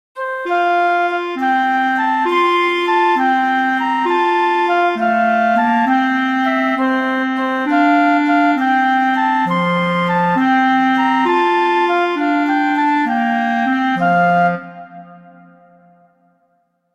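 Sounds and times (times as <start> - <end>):
Christmas flute quartet playing a carol: 0.2 - 16.2.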